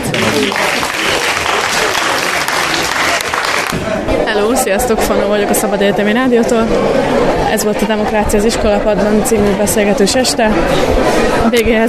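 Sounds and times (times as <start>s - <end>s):
audience applause at an evening discussion event for departing speakers: 0.0s - 4.0s
speech: 4.4s - 11.8s.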